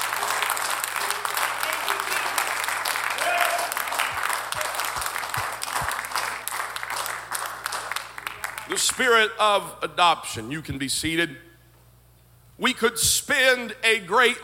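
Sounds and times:
large audience clapping hands in sustained applause: 0.0s - 9.3s
speech: 8.8s - 11.5s, 12.6s - 14.4s.

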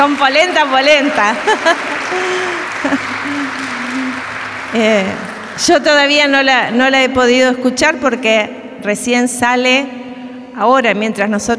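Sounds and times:
speech: 0.0s - 3.8s, 4.7s - 10.0s, 10.6s - 11.5s
audience applause: 0.0s - 6.2s
laughter: 1.0s - 5.4s.

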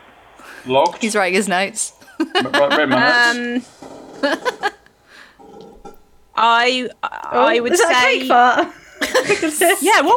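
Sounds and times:
speech: 0.6s - 4.7s, 6.4s - 10.1s
voices chuckling: 2.0s - 4.9s, 8.7s - 9.8s
creaky chair creaking: 3.4s - 6.1s.

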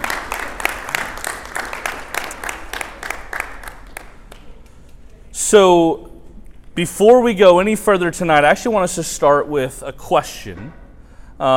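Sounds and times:
audience round of applause: 0.0s - 4.8s
speech: 5.5s - 6.1s, 6.8s - 10.8s, 11.4s - 11.5s.

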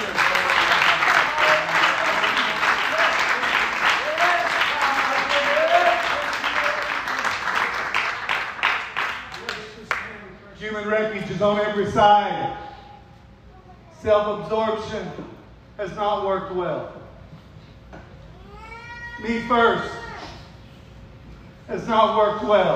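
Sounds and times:
audience clapping: 0.0s - 10.2s
speech: 11.4s - 12.4s, 14.0s - 17.0s, 19.2s - 20.0s, 21.7s - 22.7s.

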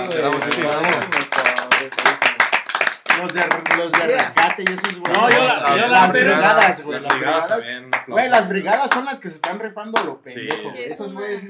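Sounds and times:
speech: 0.0s - 2.0s, 3.2s - 11.4s
clapping applause: 0.0s - 5.8s, 7.9s - 10.7s.

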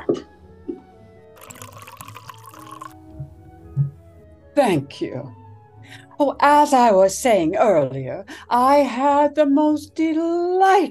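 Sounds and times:
drink pouring into a glass: 1.4s - 3.2s
speech: 4.6s - 5.4s, 6.2s - 10.8s.

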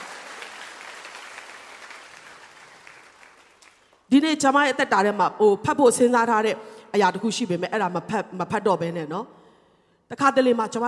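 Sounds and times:
congregation clapping hands in praise during a church sermon: 0.0s - 4.1s
speech: 4.1s - 9.4s, 10.1s - 10.8s.

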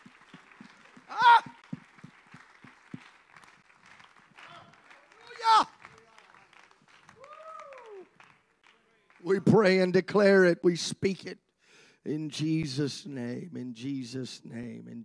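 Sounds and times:
audience clapping hands: 0.0s - 10.0s
speech: 9.3s - 11.4s, 12.0s - 15.0s.

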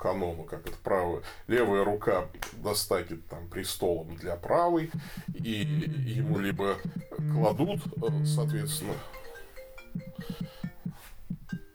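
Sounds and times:
speech: 0.0s - 9.3s
mobile phone ringing: 6.5s - 11.7s.

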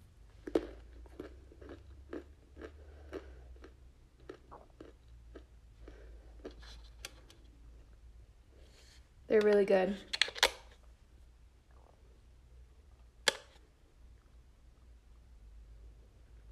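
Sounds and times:
low hum: 0.0s - 16.5s
crunching and chewing a hot pepper: 0.4s - 7.3s
speech: 9.3s - 10.2s.

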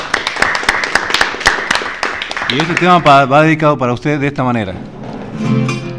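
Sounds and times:
audience applause: 0.0s - 3.3s
speech: 2.5s - 5.8s.

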